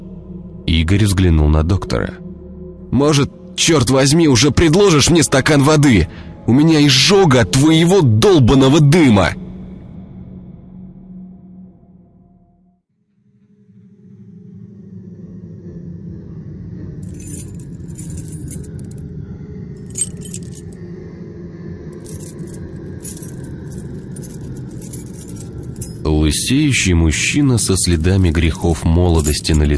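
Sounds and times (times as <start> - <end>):
speech: 0.8 - 2.2, 2.9 - 9.4, 26.3 - 29.7
bunch of keys jangling at a lock: 17.0 - 19.0, 19.8 - 20.8, 22.0 - 26.1, 29.0 - 29.7.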